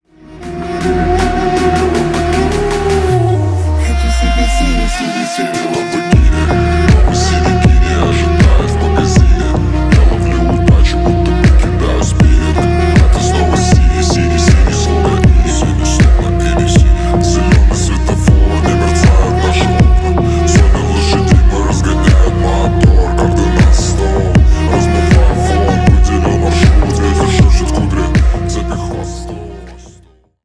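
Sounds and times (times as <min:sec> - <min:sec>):
Arab remix music: 0:00.0 - 0:30.4.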